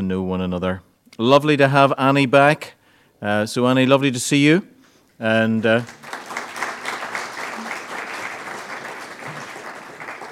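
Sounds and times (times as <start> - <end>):
speech: 0.1 - 6.1
applause at a church gathering: 5.6 - 10.2.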